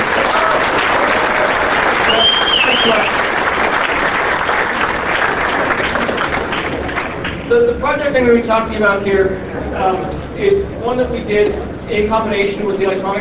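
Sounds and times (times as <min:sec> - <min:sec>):
crowd applauding: 0:00.0 - 0:07.5
whistle: 0:02.0 - 0:03.2
speech: 0:08.1 - 0:13.2.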